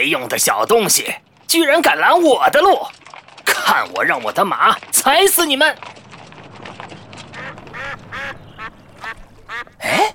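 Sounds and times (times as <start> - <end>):
speech: 0.0 - 3.0, 3.6 - 5.9
ducks quacking: 6.7 - 10.1.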